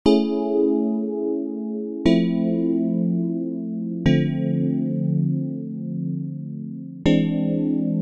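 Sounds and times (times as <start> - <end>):
laid-back neo-soul music at 60 bpm: 0.1 - 7.9.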